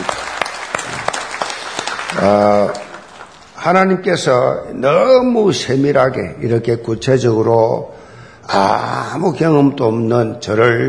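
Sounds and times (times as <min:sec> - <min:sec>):
audience applause: 0:00.0 - 0:03.6
speech: 0:02.2 - 0:02.8, 0:03.6 - 0:10.8.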